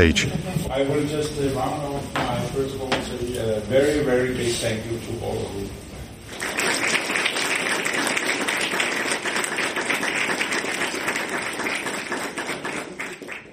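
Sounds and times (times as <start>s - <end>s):
speech: 0.0s - 5.8s
audience applause: 6.3s - 13.5s.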